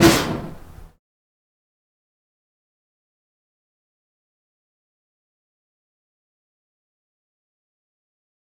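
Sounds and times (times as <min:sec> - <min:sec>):
fire staff fire sound effects: 0:00.0 - 0:00.9.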